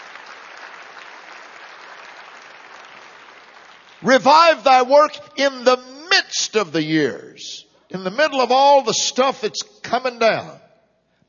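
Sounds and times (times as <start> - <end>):
audience hand clapping: 0.0 - 4.7
speech: 4.0 - 10.6.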